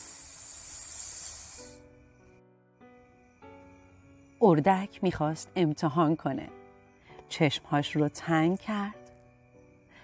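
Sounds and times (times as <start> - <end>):
voice imitating a snake's hiss: 0.0 - 1.8
soft sustained musical tones: 0.0 - 10.0
speech: 4.4 - 6.6, 7.3 - 9.0.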